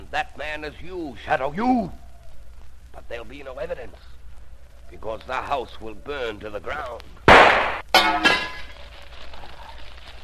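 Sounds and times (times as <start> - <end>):
low lingering hiss: 0.0 - 10.2
speech: 0.1 - 2.0, 3.0 - 4.1, 4.9 - 8.5
lamp glass breaking: 7.3 - 8.8
glass shards tinkling: 8.0 - 8.8.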